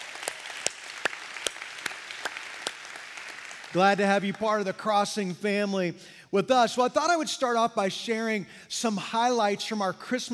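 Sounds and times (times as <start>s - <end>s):
faint audience applause at a church service: 0.0s - 4.4s
speech: 3.7s - 10.3s.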